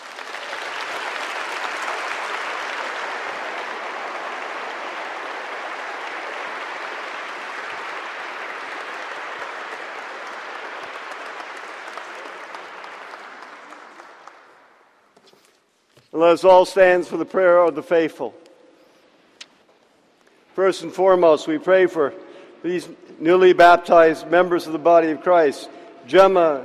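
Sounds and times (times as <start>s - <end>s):
applause for newly baptized children at a church service: 0.0s - 15.0s
speech: 16.2s - 18.4s, 20.6s - 26.6s.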